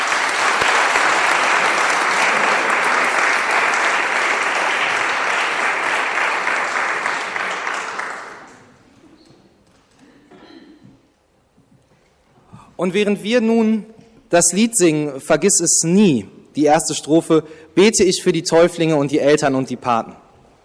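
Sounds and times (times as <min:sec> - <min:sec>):
crowd applause: 0:00.0 - 0:09.0
speech: 0:12.8 - 0:20.2.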